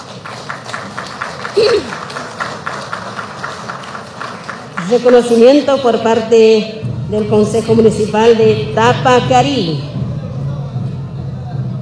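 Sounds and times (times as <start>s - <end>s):
loud audience applause: 0.0s - 5.4s
speech: 1.6s - 2.1s, 4.9s - 9.9s.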